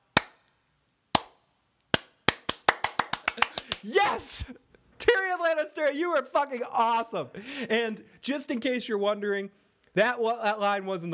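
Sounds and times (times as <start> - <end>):
slow clap: 0.0 - 0.5, 1.2 - 1.4, 2.0 - 4.5
speech: 3.4 - 4.7, 5.3 - 11.1.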